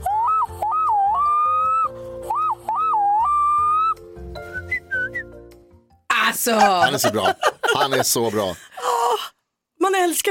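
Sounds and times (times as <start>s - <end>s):
person whistling an imitation of a black-throated loon call: 0.0s - 5.3s
speech: 6.4s - 8.6s
laughter: 6.4s - 8.9s.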